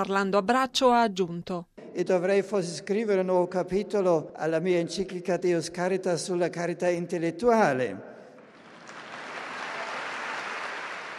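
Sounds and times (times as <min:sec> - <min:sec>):
speech: 0:00.0 - 0:08.1
students applauding: 0:08.4 - 0:11.1.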